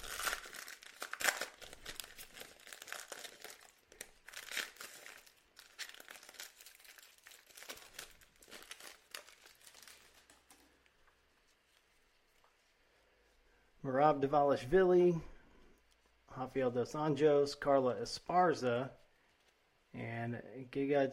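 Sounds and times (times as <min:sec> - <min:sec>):
UFC trading card pack wrapper torn open from a hobby box: 0:00.0 - 0:10.9
speech: 0:13.9 - 0:15.3, 0:16.4 - 0:19.0, 0:20.0 - 0:21.1.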